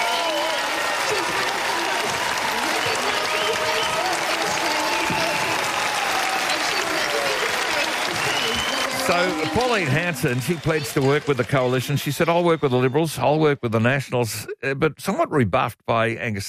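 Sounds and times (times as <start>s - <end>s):
crowd applauding: 0.0s - 13.5s
speech: 9.1s - 16.4s.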